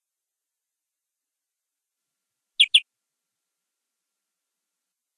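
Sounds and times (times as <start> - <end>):
canary rolling trill song: 2.6 - 2.8.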